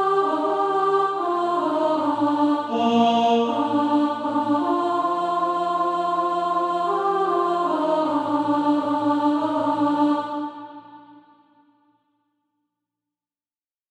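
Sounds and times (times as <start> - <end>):
alto voice singing practice music: 0.0 - 11.1.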